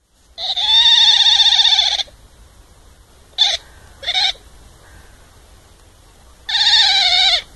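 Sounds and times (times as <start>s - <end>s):
otter calling: 0.4s - 2.1s, 3.4s - 5.3s, 6.2s - 7.5s.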